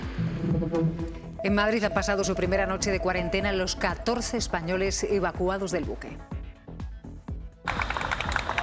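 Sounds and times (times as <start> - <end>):
low thumps: 0.2 - 5.5
speech: 0.7 - 6.3
applause greeting evacuees at the Gómez Ulla military hospital in Madrid: 7.6 - 8.6.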